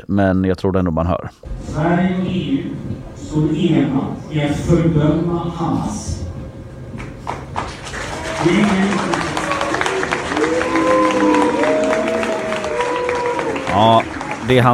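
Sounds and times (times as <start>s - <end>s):
speech: 0.0s - 6.3s, 8.4s - 9.3s, 13.7s - 14.7s
audience applause: 7.0s - 14.7s.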